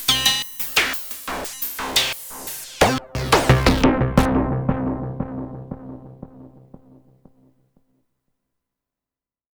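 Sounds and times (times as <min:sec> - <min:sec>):
heavily modulated electronic sounds at 88 bpm: 0:00.0 - 0:07.0.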